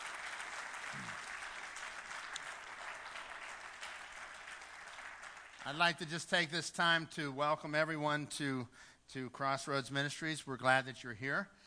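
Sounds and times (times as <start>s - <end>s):
audience applause for veterans at a Crossroads Ministries church service: 0.0s - 5.9s
speech: 5.6s - 11.6s.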